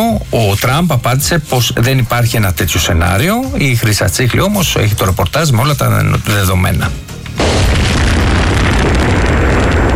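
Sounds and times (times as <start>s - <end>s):
speech: 0.0s - 7.1s
Russian drone explosion in an open-air parking lot in Kyiv: 7.4s - 9.9s.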